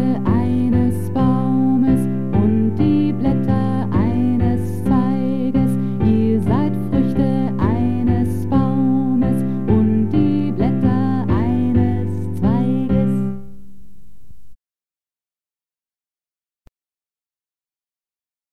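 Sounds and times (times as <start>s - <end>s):
alto singing: 0.0s - 13.5s
choral music: 0.0s - 13.6s.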